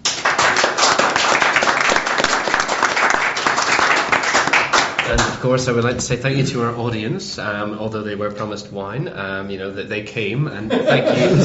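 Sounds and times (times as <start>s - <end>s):
quiz audience applause: 0.0s - 5.4s
speech: 5.4s - 11.4s
laughter: 10.6s - 11.4s.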